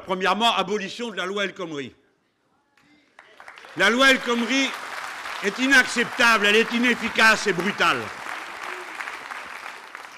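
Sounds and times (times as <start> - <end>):
speech: 0.1 - 2.0, 3.8 - 4.8, 5.4 - 8.2
crowd applause: 3.2 - 10.1.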